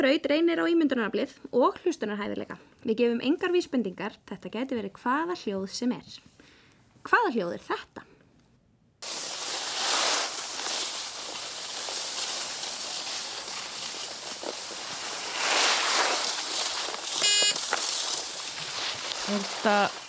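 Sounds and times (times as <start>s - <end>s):
speech: 0.0s - 6.3s, 7.0s - 8.1s, 19.3s - 20.0s
snow sled sliding over snow: 9.0s - 20.0s.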